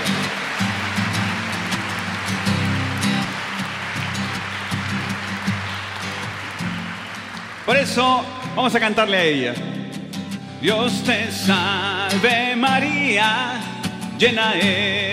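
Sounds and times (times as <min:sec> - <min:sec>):
audience applauding: 0:00.0 - 0:09.1
speech: 0:07.7 - 0:09.7, 0:10.6 - 0:15.1.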